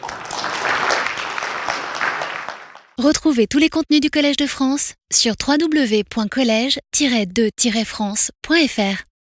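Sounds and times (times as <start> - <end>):
audience applause welcoming a guest at a Collège de France lecture: 0.0 - 3.0
speech: 3.0 - 9.1.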